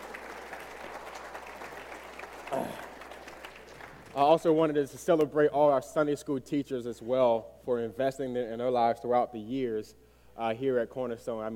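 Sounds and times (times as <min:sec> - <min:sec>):
audience clapping for graduates' parents: 0:00.0 - 0:04.9
speech: 0:04.2 - 0:11.5.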